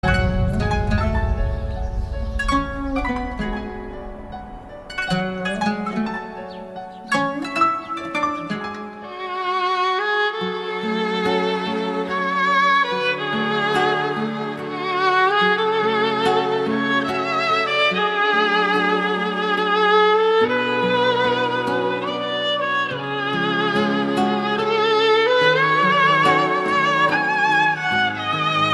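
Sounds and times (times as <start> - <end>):
gentle tender violin music: 0.0 - 28.7.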